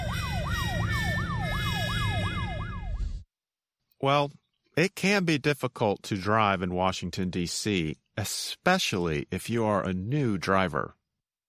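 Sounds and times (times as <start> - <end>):
police car siren on a Washington D.C. street: 0.0 - 3.2
speech: 4.0 - 11.0.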